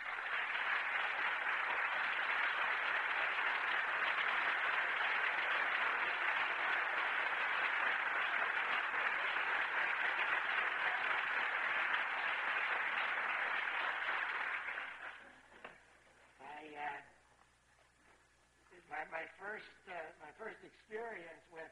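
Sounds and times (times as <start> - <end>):
audience applause in a standing ovation welcoming a guest professor: 0.0 - 15.5
person speaking: 16.4 - 17.3, 18.7 - 21.7.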